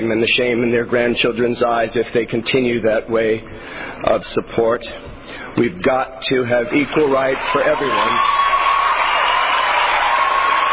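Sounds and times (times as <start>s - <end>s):
speech: 0.0s - 8.5s
crowd applause: 6.8s - 10.7s.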